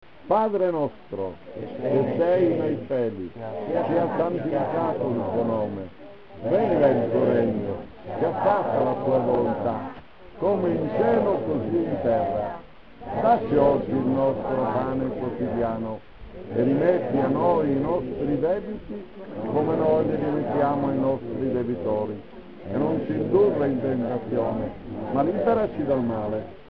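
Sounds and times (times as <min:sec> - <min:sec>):
prayer chant: 0:00.3 - 0:26.7.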